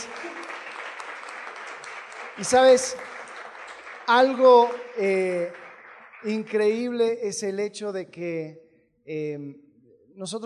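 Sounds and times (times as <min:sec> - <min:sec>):
audience applause: 0:00.0 - 0:06.9
speech: 0:02.4 - 0:03.1, 0:04.1 - 0:05.6, 0:06.2 - 0:09.6, 0:10.2 - 0:10.4.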